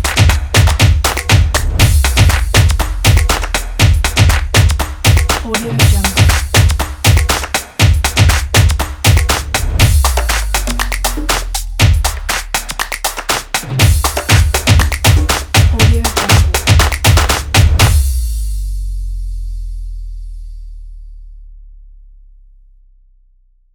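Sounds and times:
drums: 0:00.0 - 0:18.5.

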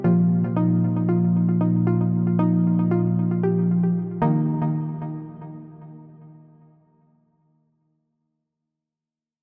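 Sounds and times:
inspirational corporate music: 0:00.0 - 0:06.5.

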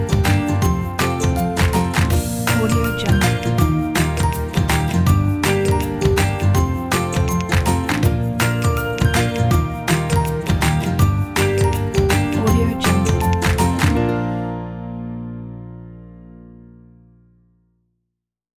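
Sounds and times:
hands clapping: 0:00.0 - 0:14.2
happy ukulele music: 0:00.0 - 0:15.6.

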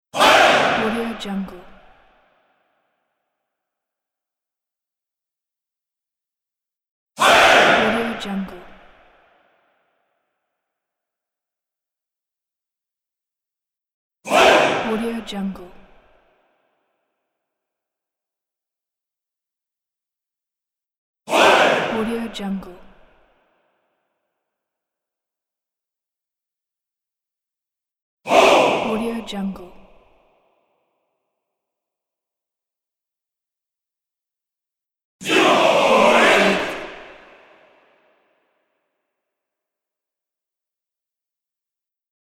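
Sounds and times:
crowd of men shouting war shouts: 0:00.2 - 0:01.0, 0:07.2 - 0:08.0, 0:14.3 - 0:14.9, 0:21.3 - 0:22.0, 0:28.3 - 0:29.1, 0:35.2 - 0:37.7.

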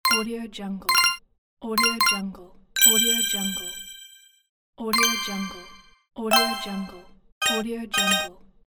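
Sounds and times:
point scored sound effect: 0:00.0 - 0:00.3, 0:00.9 - 0:01.2, 0:01.8 - 0:02.2, 0:02.8 - 0:04.3, 0:05.0 - 0:08.3.

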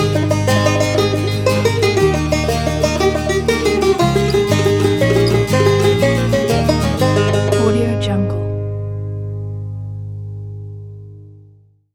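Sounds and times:
Irish banjo: 0:00.0 - 0:09.5
guitar: 0:00.0 - 0:11.6.

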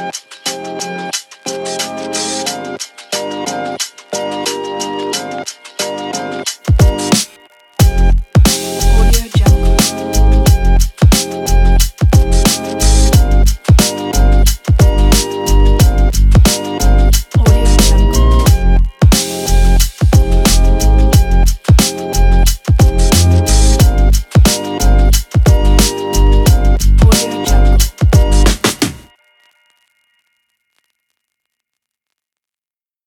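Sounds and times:
drum beat: 0:06.6 - 0:29.1.

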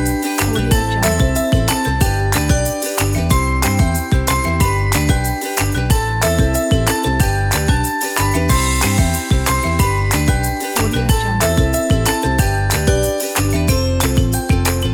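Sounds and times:
folk bells: 0:00.0 - 0:14.9
folk ukulele: 0:00.0 - 0:14.9.

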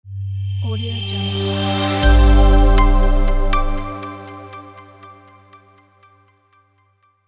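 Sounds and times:
corporate logo intro music: 0:00.6 - 0:05.8.

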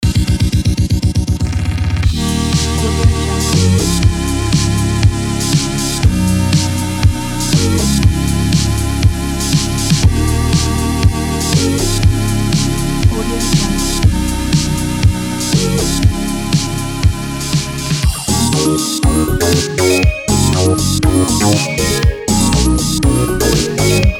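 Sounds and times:
electro pop music: 0:00.0 - 0:24.1.

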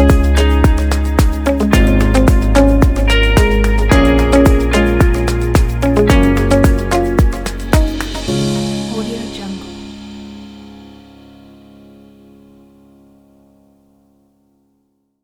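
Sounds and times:
uplifting corporate commercial music: 0:00.0 - 0:12.0.

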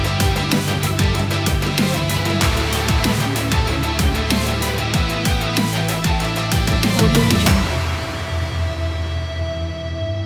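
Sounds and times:
epic orchestral rock trailer music: 0:00.0 - 0:10.1.

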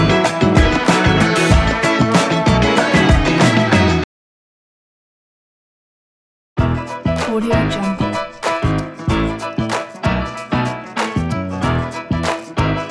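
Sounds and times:
funky gospel music: 0:00.0 - 0:04.0, 0:06.8 - 0:12.9.

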